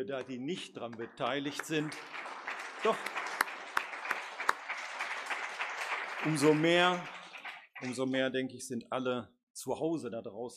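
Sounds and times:
speech: 0.0 - 3.2, 6.2 - 7.2, 7.8 - 10.5
audience applauding after a performance: 0.1 - 8.3.

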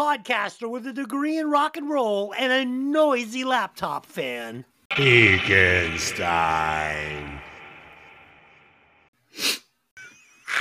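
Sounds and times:
speech: 0.0 - 7.5, 9.4 - 9.6
person sniffing: 9.3 - 9.6.

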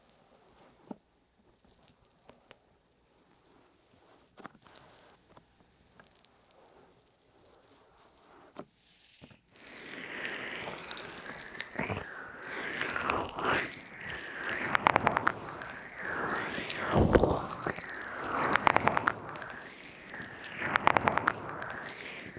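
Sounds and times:
ear massage with oil, lotion and peeling pack: 9.5 - 22.3.

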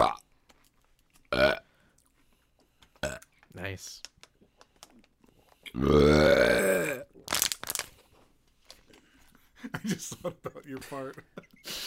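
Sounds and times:
loud rumbling burp after sipping a drink: 1.3 - 1.7, 3.0 - 3.2, 5.7 - 7.3
speech: 3.8 - 4.1, 5.8 - 6.7, 9.9 - 11.5.

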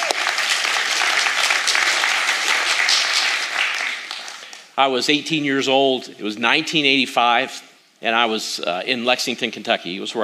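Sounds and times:
audience applause at a church service: 0.0 - 4.7
speech: 4.8 - 10.2.

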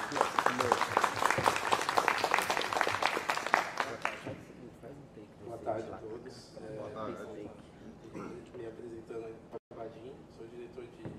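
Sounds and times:
audience applause: 0.0 - 4.3.

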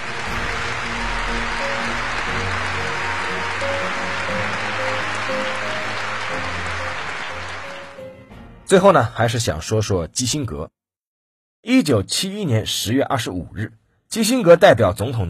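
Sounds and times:
prolonged standing applause: 0.0 - 8.3
speech: 4.8 - 6.6, 8.7 - 10.8, 11.6 - 15.2.

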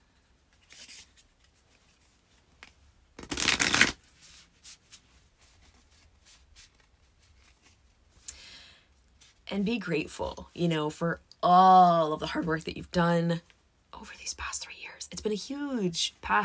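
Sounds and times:
oracle cards being shuffled: 0.5 - 7.8
speech: 9.5 - 14.6, 15.2 - 16.4.

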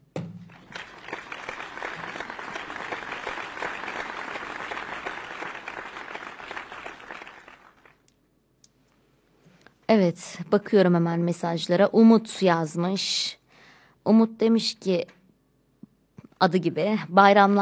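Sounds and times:
audience applause: 0.5 - 8.0
speech: 9.9 - 13.4, 14.0 - 15.2, 16.4 - 17.6.

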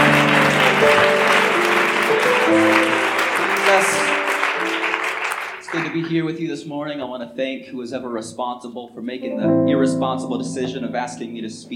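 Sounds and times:
audience clapping hands: 0.0 - 6.3
speech: 6.0 - 11.7.

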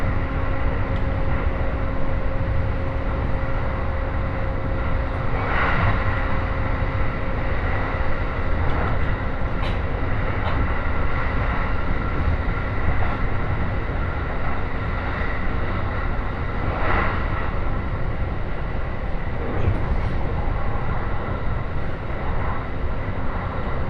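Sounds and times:
Joban Line train running between Katsuta and Ishioka: 0.0 - 23.8.

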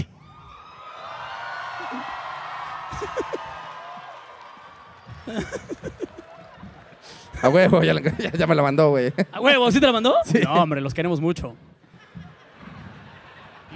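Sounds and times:
audience applause: 0.3 - 8.6
laughter: 1.8 - 4.0, 5.1 - 10.8, 11.8 - 13.7
speech: 5.3 - 6.0, 7.4 - 11.7.

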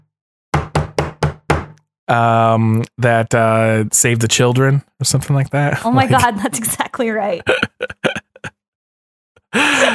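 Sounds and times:
tapping on a desk like Morse code: 0.6 - 1.8
speech: 2.1 - 8.6, 9.5 - 9.9
laughter: 7.2 - 8.5, 9.5 - 9.9.

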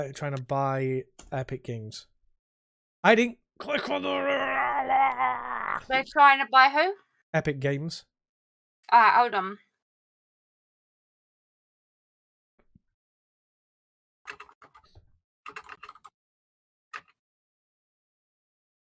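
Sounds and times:
speech: 0.0 - 2.1, 3.0 - 8.1, 8.9 - 9.6
typing on a computer keyboard: 14.3 - 14.9, 15.5 - 16.1.

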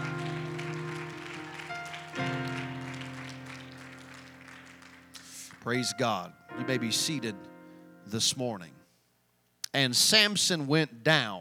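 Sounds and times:
crowd clapping hands in praise: 0.0 - 6.2
sustained keyboard or organ chords: 0.0 - 8.8
speech: 5.6 - 7.5, 8.1 - 8.8, 9.8 - 11.3.

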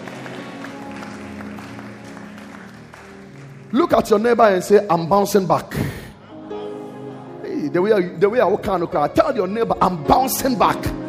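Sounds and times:
audience clapping hands: 0.0 - 5.1
speech: 3.7 - 6.0, 7.7 - 11.0.

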